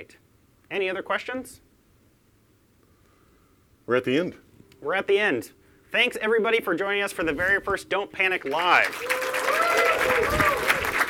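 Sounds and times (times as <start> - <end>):
speech: 0.0 - 1.7, 3.9 - 9.3
audience clapping: 8.4 - 11.0.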